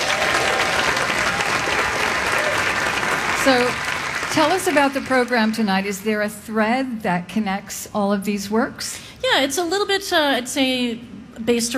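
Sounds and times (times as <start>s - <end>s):
concert audience applause in a park: 0.0s - 5.8s
speech: 3.4s - 11.7s.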